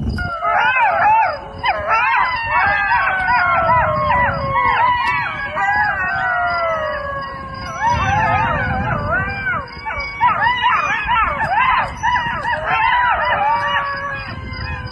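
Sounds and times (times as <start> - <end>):
dogs howling with wavering overlapping howls and yipping whines: 0.1 - 14.9.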